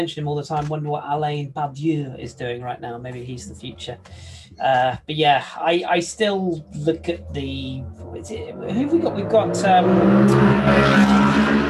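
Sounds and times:
speech: 0:00.0 - 0:11.4
motorbike passing by: 0:06.8 - 0:11.6.

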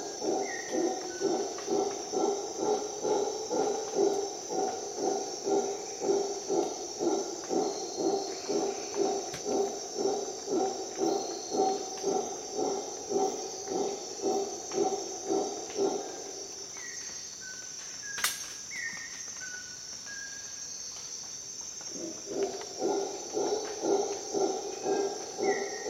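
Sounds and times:
howler monkey chorus of deep pulsed roars: 0:00.0 - 0:16.6, 0:21.9 - 0:25.8
shrill insect drone: 0:00.0 - 0:25.8.

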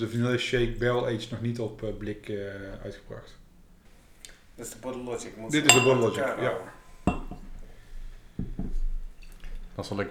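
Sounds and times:
speech: 0:00.0 - 0:03.4, 0:04.6 - 0:07.2, 0:09.8 - 0:10.0
beer glasses clinking: 0:05.5 - 0:07.6.

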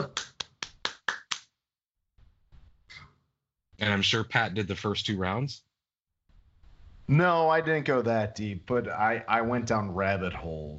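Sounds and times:
quick sharp hand claps: 0:00.0 - 0:01.6
speech: 0:03.8 - 0:05.7, 0:07.1 - 0:10.7.

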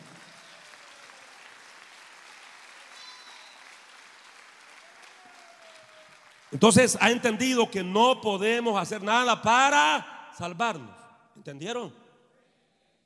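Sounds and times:
audience applause: 0:00.0 - 0:07.3
speech: 0:06.5 - 0:12.0.

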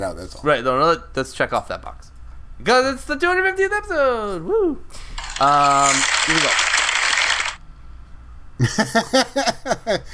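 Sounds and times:
speech: 0:00.0 - 0:06.7, 0:08.6 - 0:10.1
sound effect resembling a sewing machine: 0:05.2 - 0:07.6.

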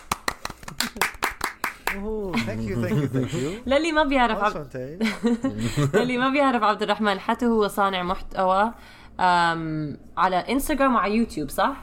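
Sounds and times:
clapping: 0:00.0 - 0:02.0
speech: 0:01.0 - 0:01.2, 0:01.9 - 0:11.8
laughter: 0:02.4 - 0:03.6, 0:05.0 - 0:06.3.

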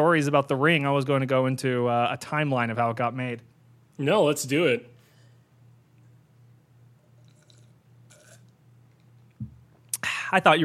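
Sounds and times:
speech: 0:00.0 - 0:04.9, 0:10.3 - 0:10.6
person gulping a big drink of water: 0:07.2 - 0:08.5.

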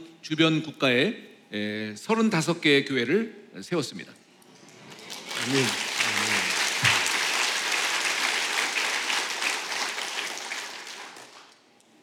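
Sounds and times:
speech: 0:00.2 - 0:04.2, 0:05.4 - 0:05.9
audience applause: 0:04.8 - 0:11.6.

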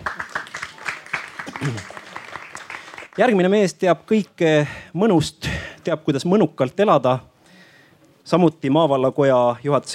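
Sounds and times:
audience applause: 0:00.0 - 0:03.3
speech: 0:01.6 - 0:02.0, 0:03.2 - 0:07.3, 0:08.2 - 0:09.9.

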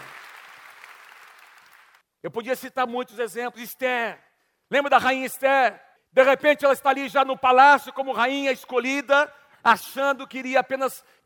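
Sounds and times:
audience applause: 0:00.0 - 0:02.0
speech: 0:02.2 - 0:11.2.

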